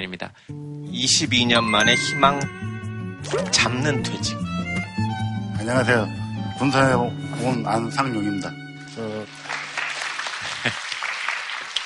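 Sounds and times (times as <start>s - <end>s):
speech: 0.0s - 2.6s, 3.2s - 4.5s, 5.6s - 9.4s
audience applause: 9.2s - 11.8s.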